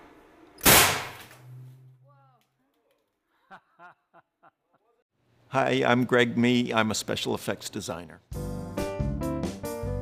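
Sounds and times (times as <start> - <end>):
stage special effect streamers firing with a blast: 0.6 - 1.4
laughter: 3.3 - 5.1
speech: 3.5 - 4.7, 5.5 - 8.4.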